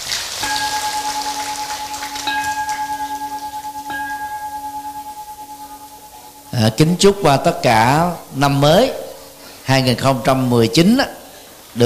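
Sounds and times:
crowd applauding: 0:00.0 - 0:03.1
clear ringing tone: 0:00.4 - 0:07.3
speech: 0:06.6 - 0:09.0, 0:09.7 - 0:11.2.

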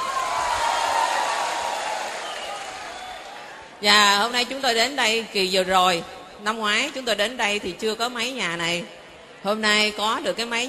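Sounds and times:
audience applause: 0:00.0 - 0:03.6
speech: 0:03.8 - 0:10.6.

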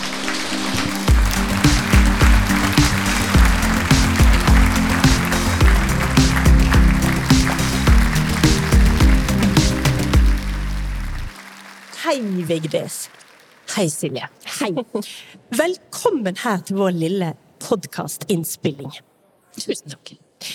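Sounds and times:
live audience applauding a guest's welcome: 0:00.0 - 0:13.9
speech: 0:12.2 - 0:20.5.

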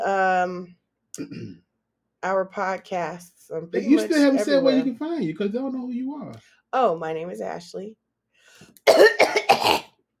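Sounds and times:
speech: 0:00.0 - 0:08.0, 0:08.6 - 0:09.9
person choking cough: 0:01.2 - 0:01.6, 0:08.8 - 0:10.0
laughter: 0:03.8 - 0:06.3.

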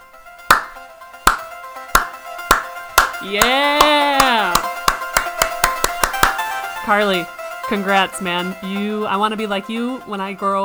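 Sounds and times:
slow clap: 0:00.5 - 0:06.7
speech: 0:03.2 - 0:04.0, 0:06.9 - 0:10.6.

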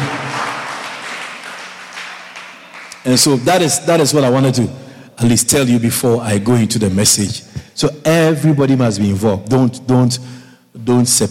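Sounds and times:
person clapping: 0:00.0 - 0:03.1
speech: 0:03.0 - 0:11.2.

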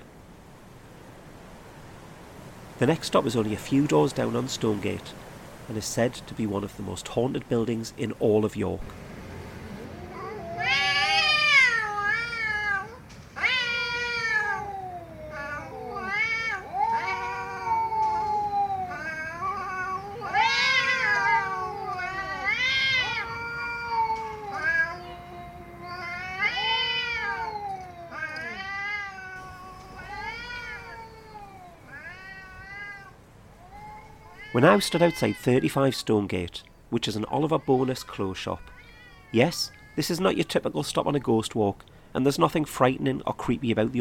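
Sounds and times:
speech: 0:02.8 - 0:09.0, 0:34.6 - 0:38.7, 0:39.3 - 0:43.9
cats yowling and caterwauling: 0:09.6 - 0:40.5.

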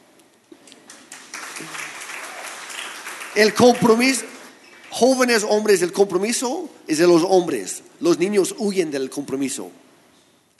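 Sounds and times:
audience applause: 0:00.8 - 0:05.4
speech: 0:01.6 - 0:01.8, 0:03.4 - 0:04.4, 0:05.0 - 0:09.9.

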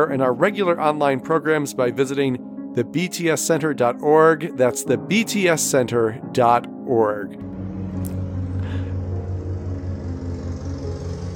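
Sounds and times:
speech: 0:00.0 - 0:08.1
lawnmower engine droning outside: 0:07.4 - 0:11.3.

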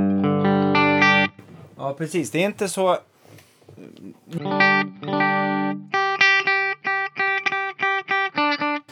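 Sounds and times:
electric guitar chords through front humbucker wired in parallel: 0:00.0 - 0:01.5, 0:04.3 - 0:08.8
speech: 0:01.9 - 0:03.1, 0:03.8 - 0:06.0.

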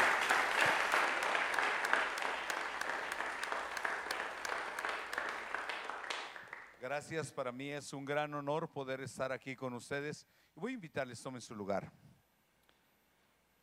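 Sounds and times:
welcoming applause from audience: 0:00.0 - 0:06.8
speech: 0:07.0 - 0:12.0.

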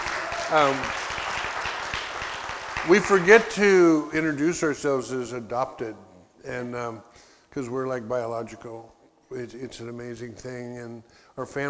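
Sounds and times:
audience applause for a young woman: 0:00.0 - 0:03.7
speech: 0:00.5 - 0:01.1, 0:02.8 - 0:11.6.

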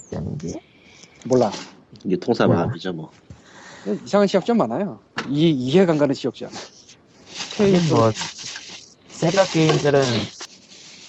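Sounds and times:
speech: 0:00.4 - 0:03.2, 0:03.8 - 0:06.7, 0:07.6 - 0:08.4, 0:09.2 - 0:10.4
plastic bag rustling near microphone: 0:07.3 - 0:11.0.

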